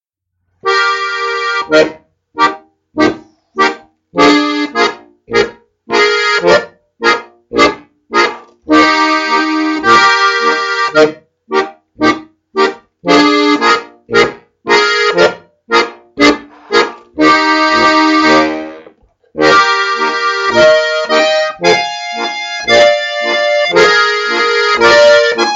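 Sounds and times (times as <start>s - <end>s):
polka music: 0.6s - 25.5s.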